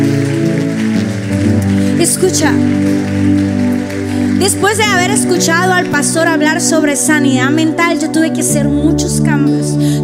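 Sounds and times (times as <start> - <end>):
audience applause: 0.0 - 6.6
speech: 2.2 - 10.0.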